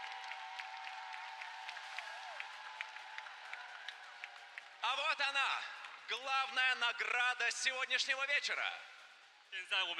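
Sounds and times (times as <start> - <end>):
large audience at a music contest applauding: 0.0 - 5.2
speech: 4.8 - 8.9, 9.5 - 9.9.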